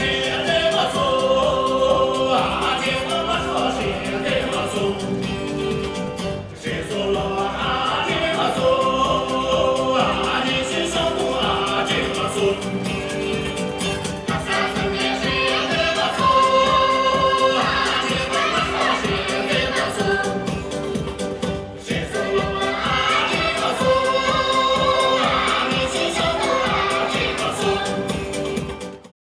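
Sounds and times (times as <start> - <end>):
dance music from China: 0.0 - 29.1.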